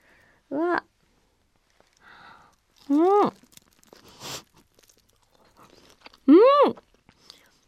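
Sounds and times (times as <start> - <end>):
speech: 0.5 - 0.9
teeth biting into crispy Gindaco takoyaki: 1.7 - 7.5
chewing takoyaki: 2.8 - 7.5.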